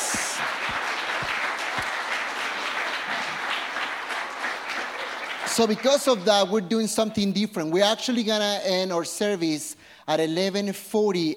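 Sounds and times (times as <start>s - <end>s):
crowd applauding: 0.0s - 6.5s
speech: 5.6s - 11.3s.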